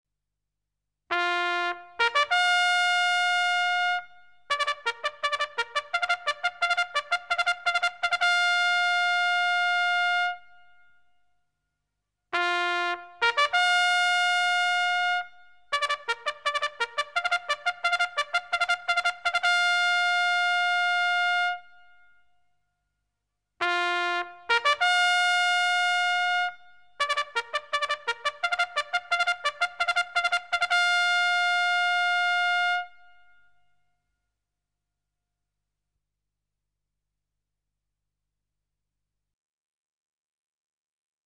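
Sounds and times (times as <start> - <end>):
military trumpet call: 1.1 - 10.5, 12.4 - 21.7, 23.6 - 33.1.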